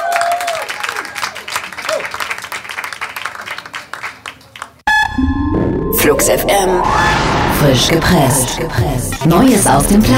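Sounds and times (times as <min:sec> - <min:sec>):
applause: 0:00.0 - 0:04.8
speech: 0:06.1 - 0:10.1.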